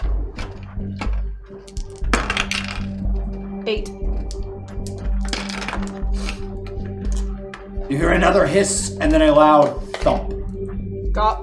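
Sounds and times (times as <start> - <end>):
dice clattering across a hard surface: 1.7 - 2.9, 4.8 - 6.0, 7.1 - 7.3
speech: 3.7 - 4.1, 7.9 - 10.4, 11.2 - 11.4.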